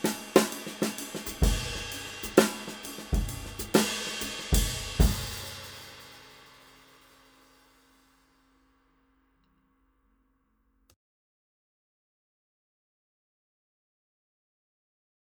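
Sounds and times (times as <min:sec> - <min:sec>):
Craviotto 5x14 oak snare drum: 0:00.0 - 0:06.7.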